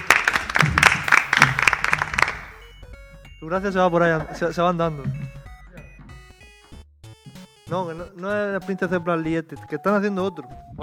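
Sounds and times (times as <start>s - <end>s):
people clapping: 0.0s - 2.9s
speech: 3.4s - 5.4s, 7.7s - 10.8s.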